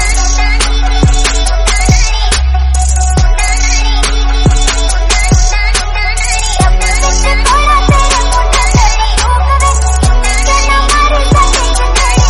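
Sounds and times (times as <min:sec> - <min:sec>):
background music: 0:00.0 - 0:12.2.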